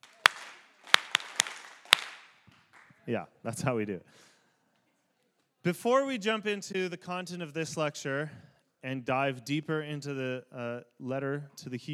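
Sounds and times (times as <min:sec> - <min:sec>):
lecture audience clapping in unison in a rehearsed clap routine: 0:00.0 - 0:03.0
speech: 0:03.1 - 0:04.3, 0:05.6 - 0:11.9.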